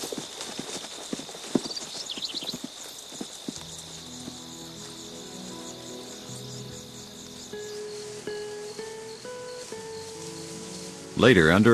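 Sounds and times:
chirping insects: 0:00.0 - 0:11.7
horses' hooves clip-clopping as riders set off: 0:00.0 - 0:11.7
soft music: 0:03.6 - 0:11.7.

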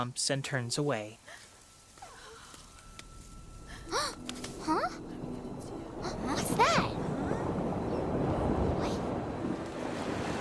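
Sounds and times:
speech: 0:00.0 - 0:01.4
water flowing back into riverbed: 0:04.6 - 0:10.3.

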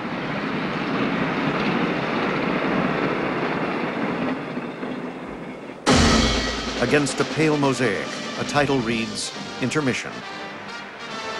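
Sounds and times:
train rumbling across a barren landscape: 0:00.0 - 0:11.3
loud burst of noise: 0:05.9 - 0:09.7
speech: 0:06.8 - 0:10.4.

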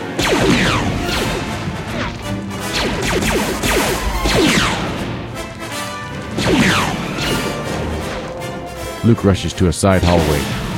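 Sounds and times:
speech: 0:00.2 - 0:00.8, 0:09.1 - 0:10.6
Boba Fett's blaster shots at Luke: 0:00.2 - 0:08.2.

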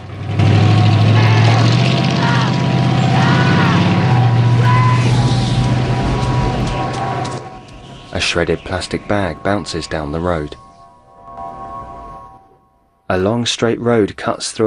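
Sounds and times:
pickup truck engine pulling away on a dusty road: 0:00.0 - 0:11.9
speech: 0:08.2 - 0:10.6, 0:13.1 - 0:14.6.

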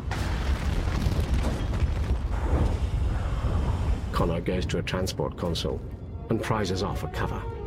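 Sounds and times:
bursts of flame roaring in a film scene: 0:00.1 - 0:04.2
speech: 0:04.2 - 0:07.6.

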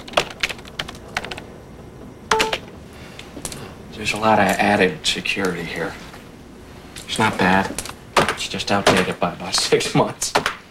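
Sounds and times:
typing on a computer keyboard: 0:00.0 - 0:01.4, 0:02.3 - 0:02.6
speech: 0:04.0 - 0:06.0, 0:07.1 - 0:10.4.

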